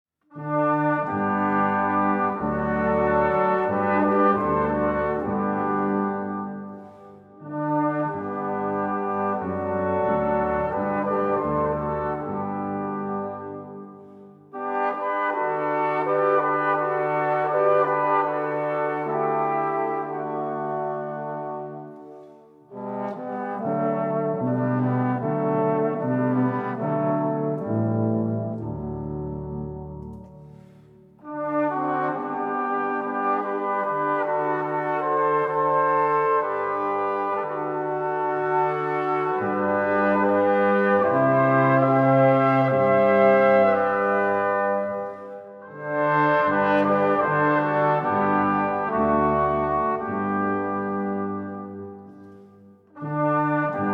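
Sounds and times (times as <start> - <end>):
wind instruments playing: 0.3 - 53.9.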